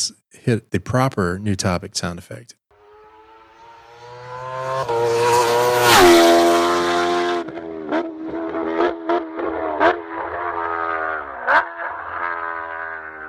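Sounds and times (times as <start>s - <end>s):
speech: 0.1s - 2.6s
Kawasaki H2R motorcycle racing past: 2.8s - 13.2s.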